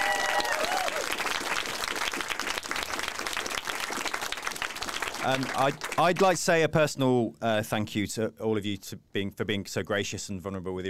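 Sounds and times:
audience round of applause: 0.0s - 6.4s
speech: 5.2s - 10.8s.

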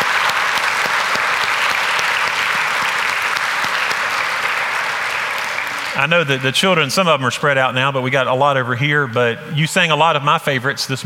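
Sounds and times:
audience applause: 0.0s - 7.2s
speech: 6.0s - 11.0s.

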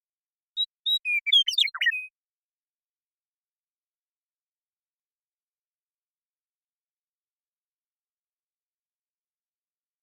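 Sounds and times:
western meadowlark song: 0.6s - 2.2s.

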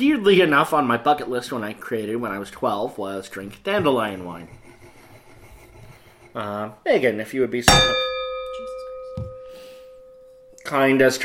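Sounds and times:
speech: 0.0s - 4.6s, 6.4s - 8.1s, 10.7s - 11.2s
wine glass bumped and nearly tipping over: 7.7s - 10.4s
wine glass ringing: 7.7s - 10.6s.

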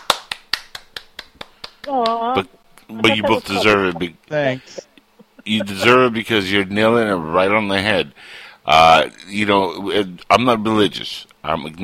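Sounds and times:
person clapping hands: 0.0s - 2.4s
speech: 1.8s - 4.9s, 5.5s - 11.8s
laughter: 3.0s - 4.1s, 4.7s - 6.5s.

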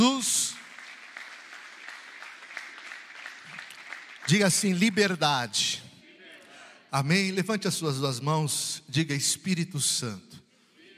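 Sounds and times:
speech: 0.0s - 0.4s, 4.3s - 5.9s, 6.9s - 10.4s
audience applauding: 0.0s - 5.5s.

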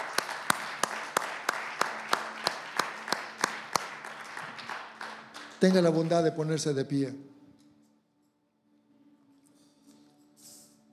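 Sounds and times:
audience applauding: 0.0s - 6.8s
speech: 5.6s - 7.3s.

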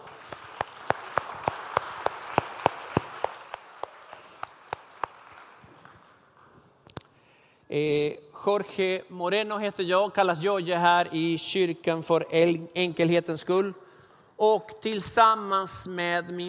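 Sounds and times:
audience applause: 0.0s - 6.2s
speech: 7.7s - 13.8s, 14.4s - 16.4s.

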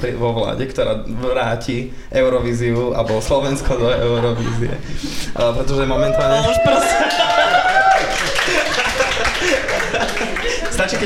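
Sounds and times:
speech: 0.0s - 7.5s
laughter: 3.0s - 11.0s
audience applause: 6.1s - 11.0s.

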